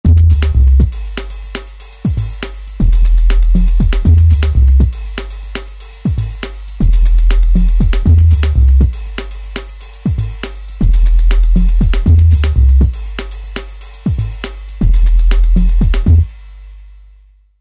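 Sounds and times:
drum and bass music: 0.0 - 16.3.

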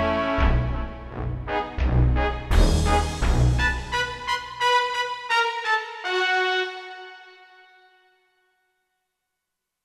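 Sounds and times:
orchestra playing: 0.0 - 7.3.

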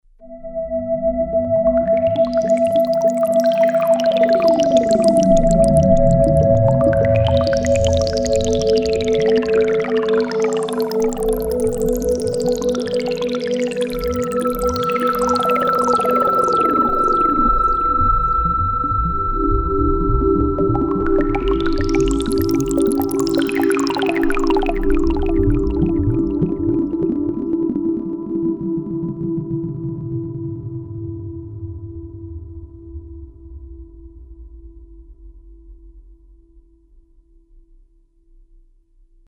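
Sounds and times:
synthesizer: 0.2 - 31.7.

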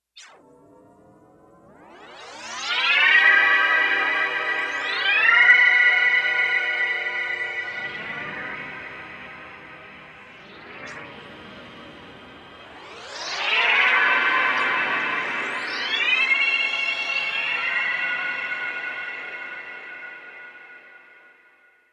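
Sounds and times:
synth: 0.2 - 21.6.

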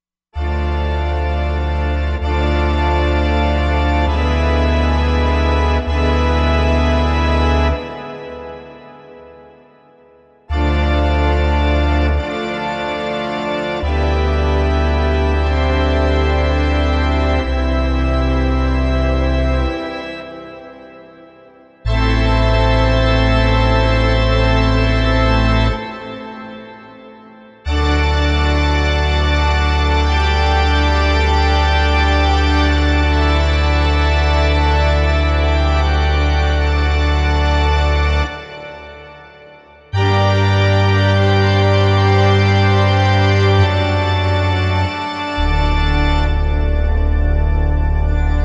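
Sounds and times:
grand pipe organ: 0.4 - 48.4.

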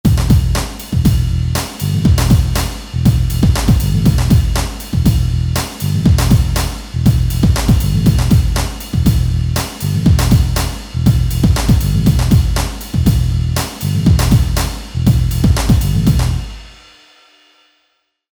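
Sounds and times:
rap hip hop music: 0.1 - 16.4.

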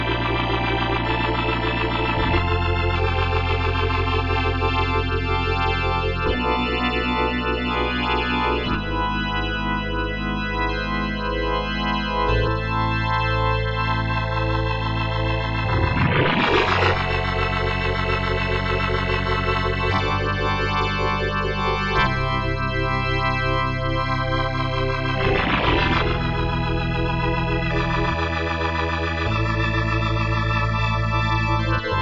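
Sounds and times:
full organ on Korg TR-Rack: 0.0 - 32.0.

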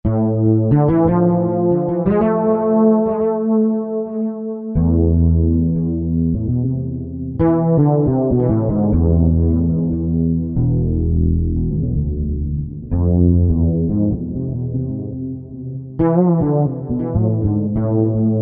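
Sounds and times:
wet fretless bass: 0.0 - 18.4.

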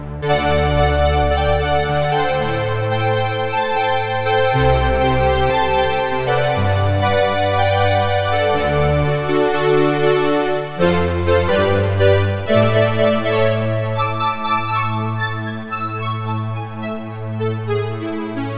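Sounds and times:
strings: 0.3 - 18.5.

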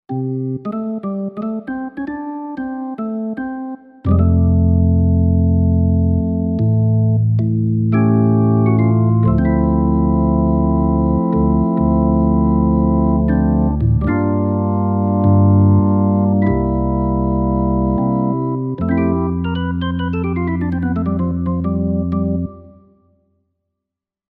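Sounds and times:
organ: 0.1 - 22.8.

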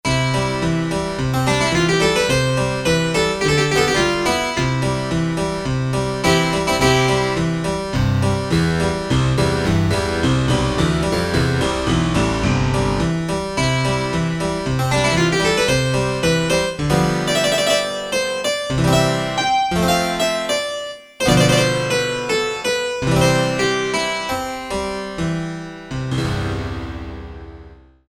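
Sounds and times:
harpsichord: 0.0 - 27.8.

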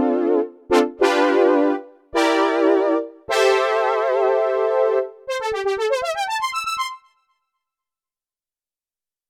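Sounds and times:
classic synth brass patch on a Korg Radias-R: 0.2 - 7.3.

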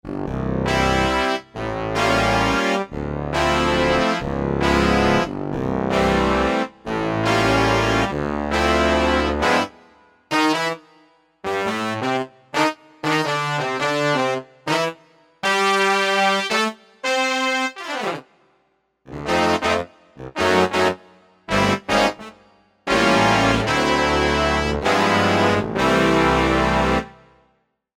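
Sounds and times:
synth brass: 0.5 - 18.4, 19.1 - 27.4.

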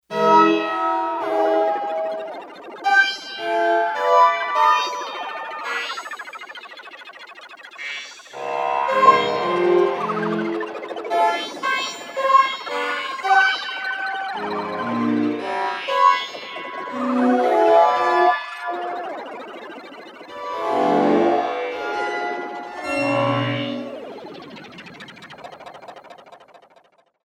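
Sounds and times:
synth: 0.1 - 27.2.

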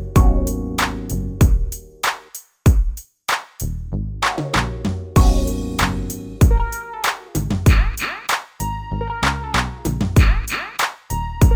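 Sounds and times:
drum machine factory patterns: 0.2 - 3.5, 4.3 - 8.6, 10.0 - 11.5.

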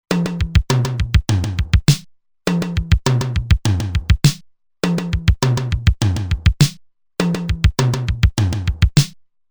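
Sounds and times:
Roland TR-505 drum machine fill in 4-4: 0.1 - 9.1.

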